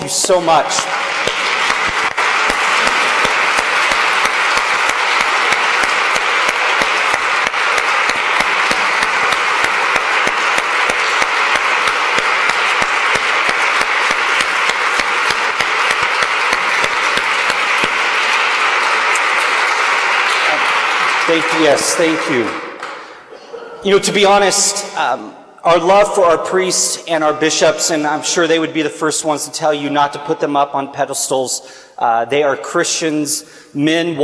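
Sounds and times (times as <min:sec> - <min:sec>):
standing applause: 0:00.0 - 0:22.6
speech: 0:00.1 - 0:01.2, 0:21.4 - 0:22.6, 0:23.8 - 0:34.2.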